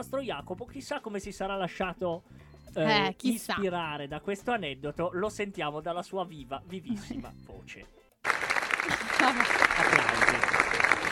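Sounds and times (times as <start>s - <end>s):
speech: 0.0s - 8.4s
audience applause: 8.2s - 11.0s
laughter: 8.8s - 11.0s.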